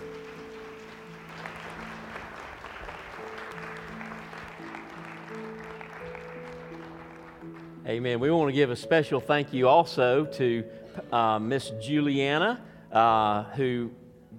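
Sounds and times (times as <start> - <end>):
audience applause for children's performance: 0.0 - 7.8
speech: 7.9 - 14.0.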